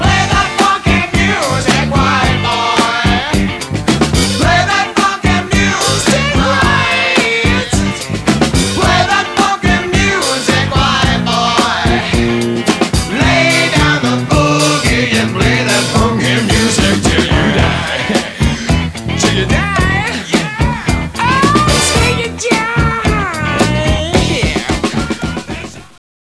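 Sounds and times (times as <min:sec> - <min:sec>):
music: 0:00.0 - 0:26.0.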